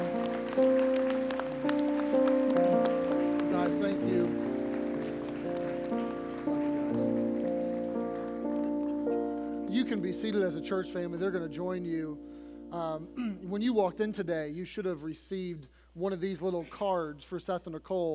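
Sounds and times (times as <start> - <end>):
audience applause: 0.0 - 9.6
speech: 10.2 - 18.1.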